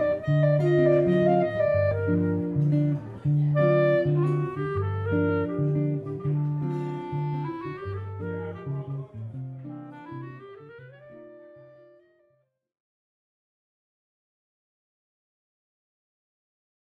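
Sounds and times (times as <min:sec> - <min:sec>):
jazz duo playing: 0:00.0 - 0:12.0.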